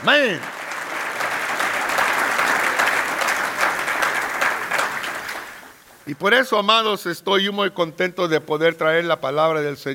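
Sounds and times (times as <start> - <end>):
speech: 0.0 - 0.6, 6.1 - 9.9
audience applause: 0.0 - 5.8.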